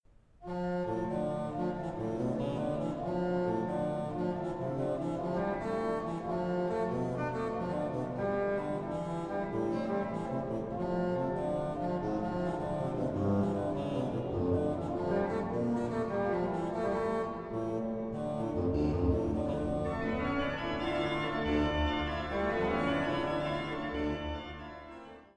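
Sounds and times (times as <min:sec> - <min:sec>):
organ partita: 0:00.5 - 0:25.2.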